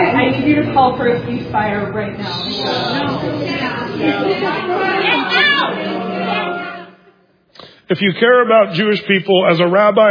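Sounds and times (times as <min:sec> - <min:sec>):
speech: 0:00.5 - 0:06.5, 0:07.9 - 0:10.0
crowd groaning in disapproval: 0:02.2 - 0:07.2.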